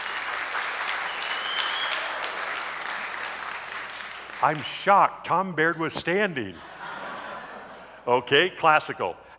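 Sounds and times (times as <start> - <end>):
crowd clapping loudly: 0.0 - 4.8
speech: 4.4 - 6.7, 8.0 - 9.2
laughter: 6.5 - 8.2.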